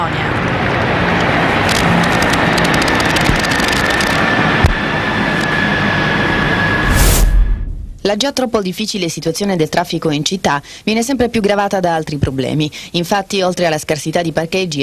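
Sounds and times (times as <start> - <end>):
Italian Navy helicopters passing overhead: 0.0 - 8.1
speech: 8.1 - 14.8.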